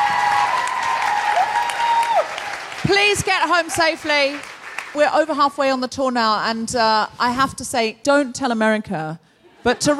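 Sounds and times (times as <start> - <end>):
audience applause: 0.0 - 5.0
speech: 2.9 - 9.9.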